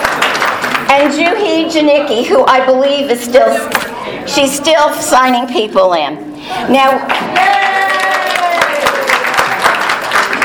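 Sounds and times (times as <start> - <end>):
audience applause at an ACBL gathering: 0.0 - 0.9, 7.1 - 10.4
speech: 0.9 - 7.6.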